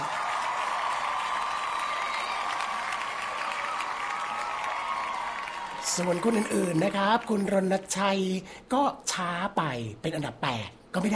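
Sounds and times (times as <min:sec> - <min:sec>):
audience applause: 0:00.0 - 0:07.6
speech: 0:06.0 - 0:11.1.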